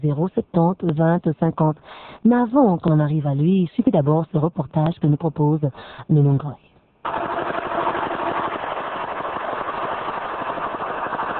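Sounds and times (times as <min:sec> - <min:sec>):
speech: 0:00.0 - 0:07.6
street-cleaning vacuum machine engine: 0:07.1 - 0:11.3.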